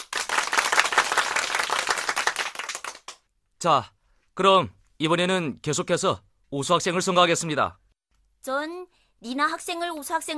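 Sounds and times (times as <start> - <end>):
classroom applause for elected student: 0.0 - 3.2
speech: 3.6 - 7.8, 8.4 - 10.3.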